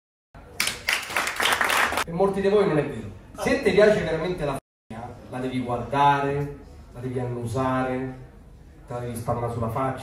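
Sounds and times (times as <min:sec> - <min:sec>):
audience applause: 0:00.6 - 0:02.0
speech: 0:02.1 - 0:04.6, 0:05.3 - 0:08.3, 0:08.9 - 0:10.0.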